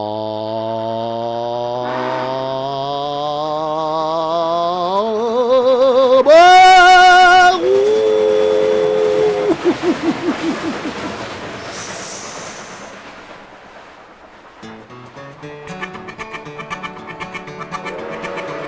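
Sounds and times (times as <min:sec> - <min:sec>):
train chugging along the rails: 0:02.0 - 0:18.6
laughter: 0:07.6 - 0:11.2
instrumental music: 0:14.6 - 0:18.6.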